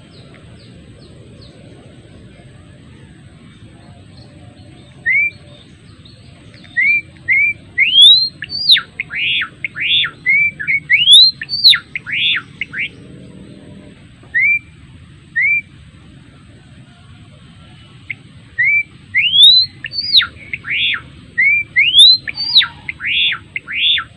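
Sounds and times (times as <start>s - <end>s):
adult male Java sparrow singing whistled notes: 3.5s - 13.1s, 14.3s - 15.7s, 18.0s - 24.1s.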